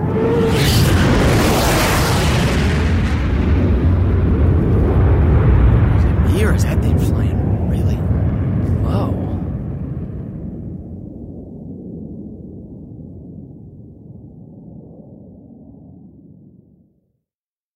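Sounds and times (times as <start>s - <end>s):
fighter jet flying overhead: 0.0s - 10.8s.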